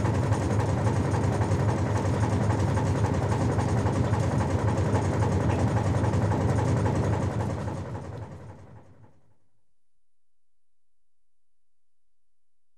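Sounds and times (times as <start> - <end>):
auxiliary engine running below deck: 0.0 - 9.4.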